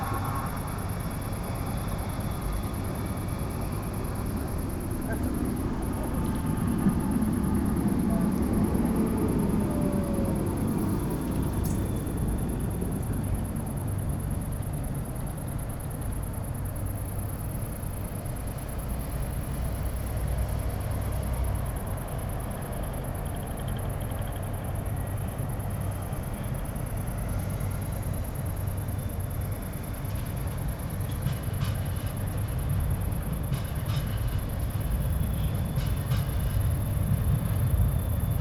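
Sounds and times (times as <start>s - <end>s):
train: 0.0s - 38.3s.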